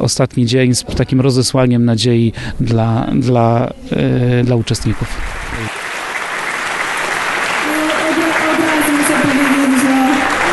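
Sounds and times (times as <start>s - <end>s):
speech: 0.0s - 5.8s
audience applause: 4.4s - 10.5s.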